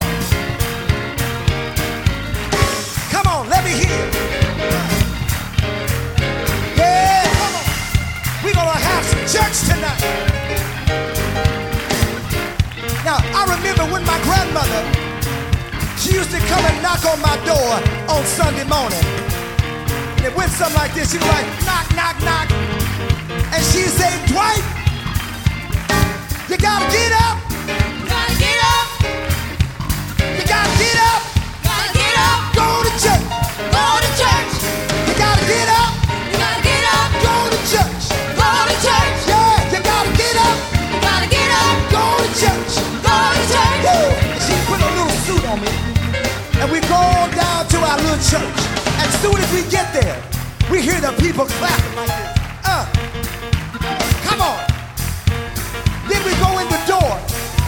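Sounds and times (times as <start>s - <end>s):
gospel church music medley: 0.0s - 57.6s.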